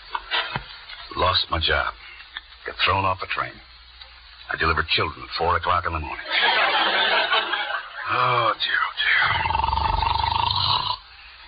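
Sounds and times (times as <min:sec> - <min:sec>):
speech: 0:01.3 - 0:02.0, 0:02.6 - 0:03.7, 0:04.5 - 0:07.0, 0:08.1 - 0:09.6
laughter: 0:06.2 - 0:08.5
man snoring in bed: 0:08.1 - 0:11.0.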